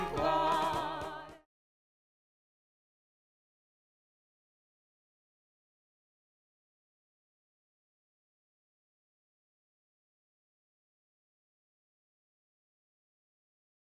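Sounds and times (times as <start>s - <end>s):
polka music: 0.0s - 1.4s.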